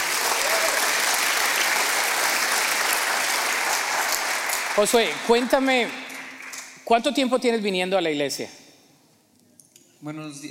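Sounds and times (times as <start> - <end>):
audience applause: 0.0 - 6.8
speech: 4.8 - 6.0, 6.9 - 8.6, 10.0 - 10.4.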